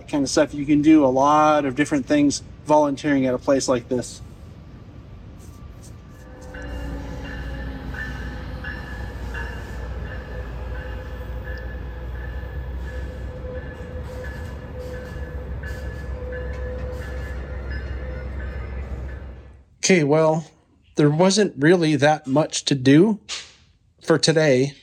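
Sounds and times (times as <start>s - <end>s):
train rolling along the rails: 0.0s - 19.7s
speech: 0.1s - 4.3s, 19.9s - 23.5s, 24.1s - 24.8s.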